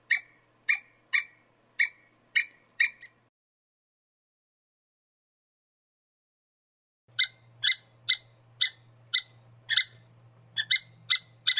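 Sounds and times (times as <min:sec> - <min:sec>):
squirrel calling with harsh sharp notes: 0:00.0 - 0:03.3, 0:07.1 - 0:11.5.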